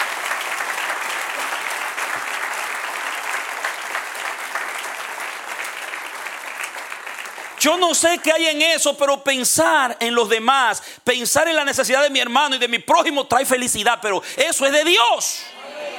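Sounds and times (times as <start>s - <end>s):
crowd clapping: 0.0s - 8.4s
speech: 7.6s - 15.6s.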